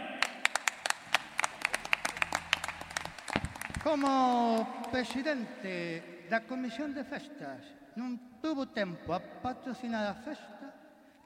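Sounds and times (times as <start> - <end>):
audience applause: 0.2 - 6.4
speech: 3.8 - 10.6.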